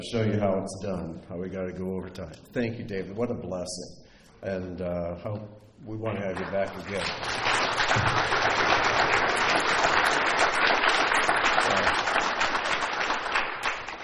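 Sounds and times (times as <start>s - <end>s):
speech: 0.0s - 8.7s
audience clapping: 6.0s - 14.0s.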